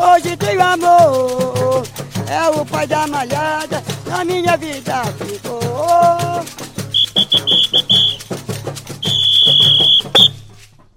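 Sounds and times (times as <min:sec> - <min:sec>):
pounding percussion of a Boi Bumbá folk song: 0:00.0 - 0:10.9
speech: 0:02.3 - 0:06.7
shrill high whistle blasts: 0:06.9 - 0:08.4, 0:09.0 - 0:10.6.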